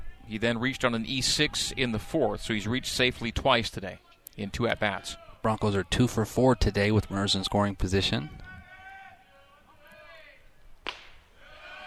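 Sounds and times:
speech: 0.3s - 8.4s
baseball smacking into a catcher's mitt: 10.8s - 11.2s.

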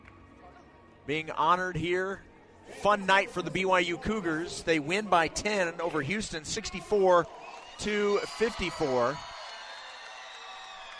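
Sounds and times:
speech: 1.1s - 9.3s
crowd cheering and clapping in arena: 6.6s - 10.9s.

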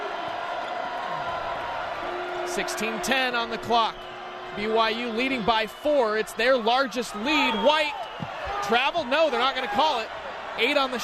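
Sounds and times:
basketball crowd cheering: 0.0s - 11.0s
speech: 2.6s - 11.0s.

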